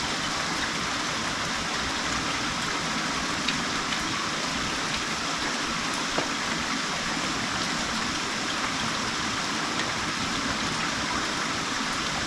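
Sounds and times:
rain: 0.0s - 12.2s.

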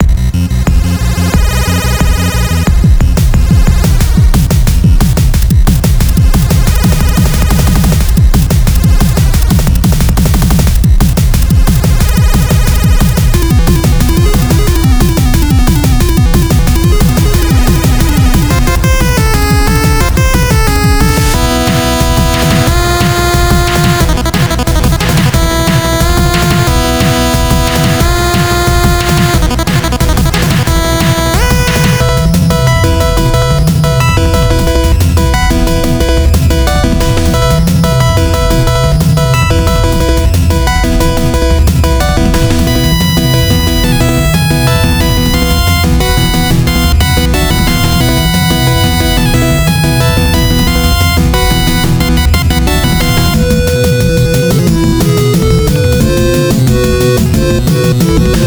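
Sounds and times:
Egyptian fortress boss game music: 0.0s - 58.4s.

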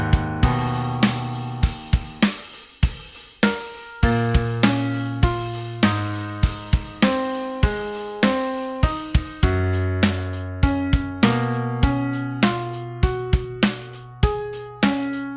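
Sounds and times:
sad piano: 0.0s - 2.3s, 3.4s - 15.3s
drums: 0.0s - 15.3s.

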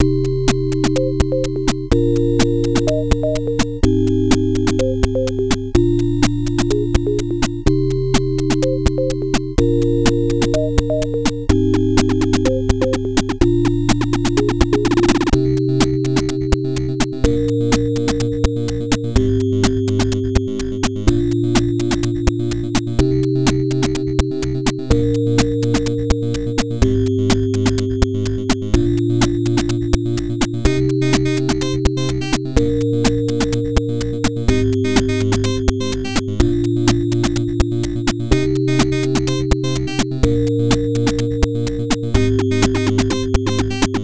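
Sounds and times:
MSX chiptune music: 0.0s - 44.0s.

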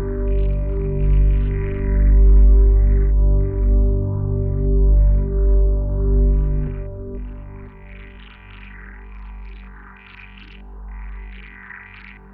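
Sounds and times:
temple underwater theme music: 0.0s - 8.5s.

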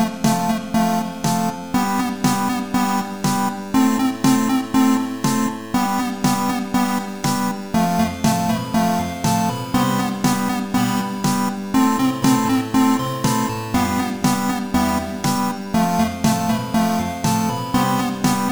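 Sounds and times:
electro chiptune music: 0.0s - 18.4s.

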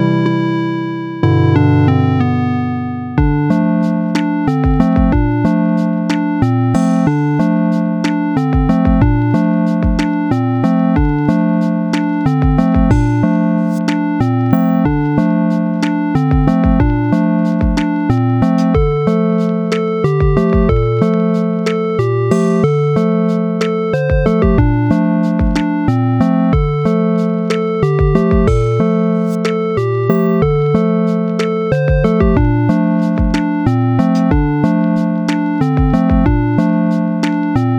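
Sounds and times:
8-bit rainy city lofi music: 0.0s - 37.7s.

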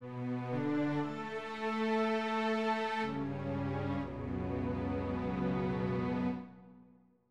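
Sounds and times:
losing music: 0.0s - 6.9s.

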